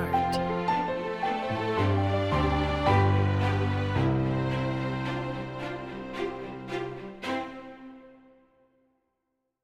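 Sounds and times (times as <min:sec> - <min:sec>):
inspiring piano theme: 0:00.0 - 0:07.5.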